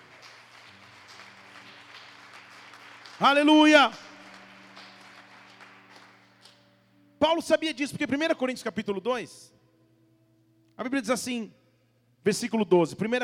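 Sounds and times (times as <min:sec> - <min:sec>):
audience applauding: 0:00.0 - 0:06.6
speech: 0:03.2 - 0:04.0, 0:07.2 - 0:09.6, 0:10.8 - 0:11.6, 0:12.2 - 0:13.2.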